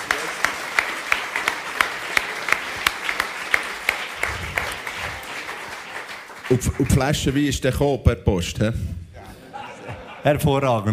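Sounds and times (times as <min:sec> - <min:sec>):
audience applause: 0:00.0 - 0:07.5
speech: 0:06.5 - 0:09.0, 0:10.2 - 0:10.9
laughter: 0:09.2 - 0:10.9.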